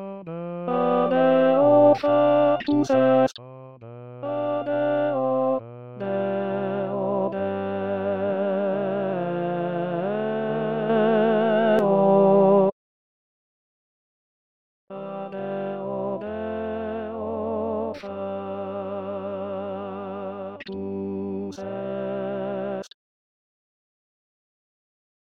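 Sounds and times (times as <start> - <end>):
tenor singing: 0.0 - 12.1, 14.9 - 22.9.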